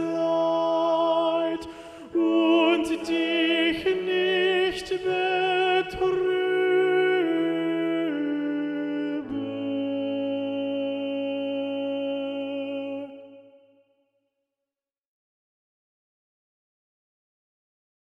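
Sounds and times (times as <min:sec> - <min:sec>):
tenor singing: 0:00.0 - 0:13.6.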